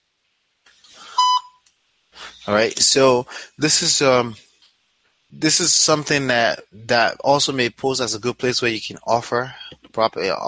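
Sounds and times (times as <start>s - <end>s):
voicemail beep: 1.1s - 1.6s
speech: 2.4s - 4.5s, 5.3s - 10.4s.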